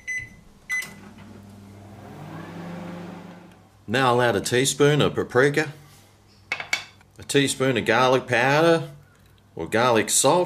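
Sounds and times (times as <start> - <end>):
microwave oven beeps: 0.0 - 1.1
microwave oven humming while heating butter in a bowl: 0.0 - 3.7
speech: 3.9 - 5.8, 7.3 - 9.0, 9.6 - 10.4.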